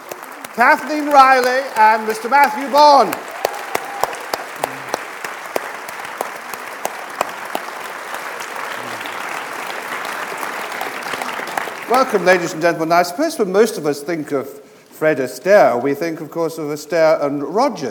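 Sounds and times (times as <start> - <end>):
audience applause welcoming guests on stage: 0.0 - 12.6
speech: 0.6 - 3.3, 11.9 - 17.8.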